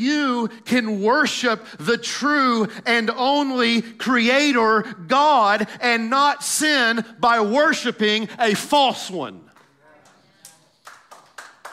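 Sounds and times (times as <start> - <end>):
speech: 0.0 - 9.4
golf clap: 9.5 - 11.7.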